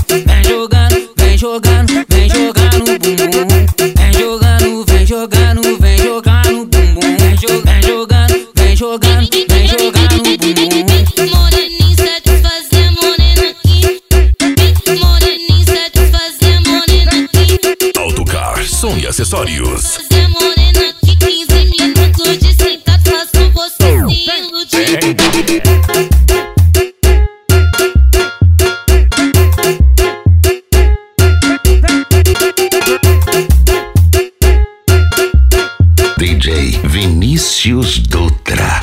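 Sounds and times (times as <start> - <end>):
aggressive rhythmic funk music: 0.0 - 38.8.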